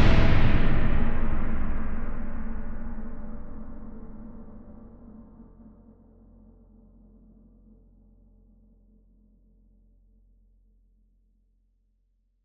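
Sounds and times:
epic cinematic battlefield trailer music: 0:00.0 - 0:03.4.

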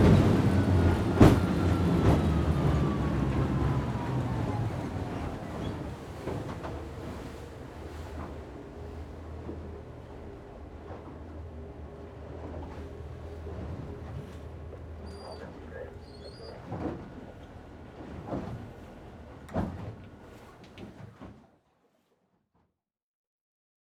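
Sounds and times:
patrol boat sirens: 0:00.0 - 0:05.7
patrol boat driving on open water heard from interior: 0:00.0 - 0:21.6.

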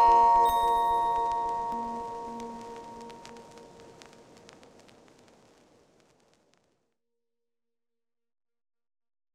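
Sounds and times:
creepy cinematic music box melody: 0:00.0 - 0:03.3.

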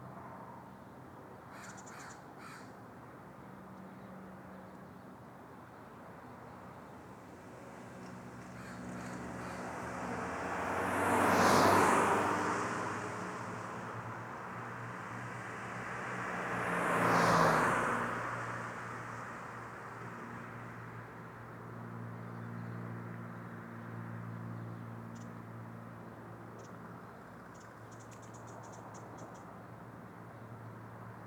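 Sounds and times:
crow calling: 0:01.5 - 0:02.7, 0:08.6 - 0:09.6
cars driving by in daytime: 0:09.1 - 0:19.4.

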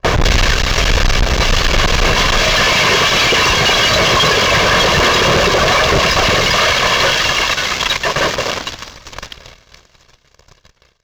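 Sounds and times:
distorted communication jammer transition: 0:00.1 - 0:08.8.

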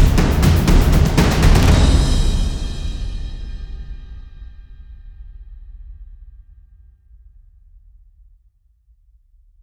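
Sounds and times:
epic percussion-only music at 120 BPM: 0:00.0 - 0:05.0.

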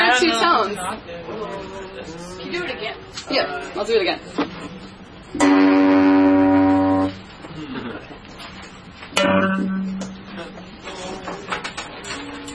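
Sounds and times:
speech: 0:00.2 - 0:06.2, 0:09.2 - 0:10.6
two tones an octave apart: 0:05.4 - 0:07.2, 0:09.2 - 0:10.8.

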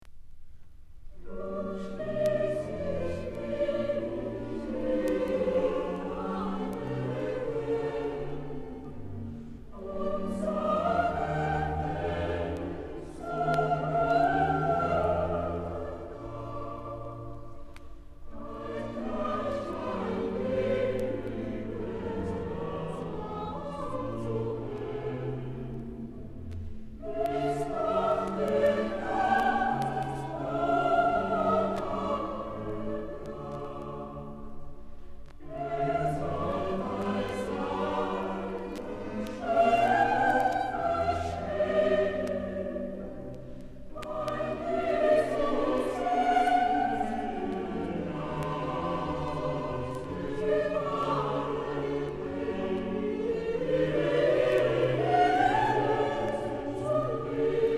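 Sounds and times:
choir singing motet: 0:01.2 - 0:57.7.

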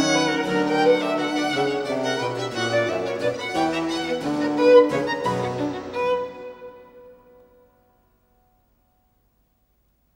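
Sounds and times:
canon for two violins playing in unison: 0:00.0 - 0:07.2.

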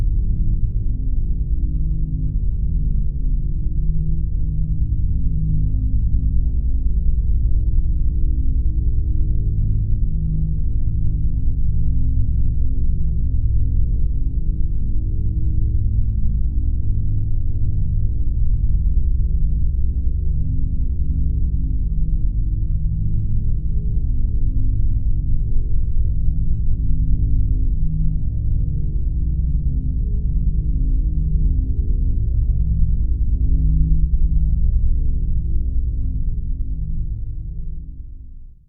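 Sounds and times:
deep ethereal powerful tonal bass drone: 0:00.0 - 0:38.6.

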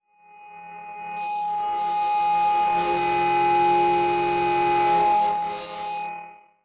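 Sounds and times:
distorted transition effect: 0:01.2 - 0:06.1.

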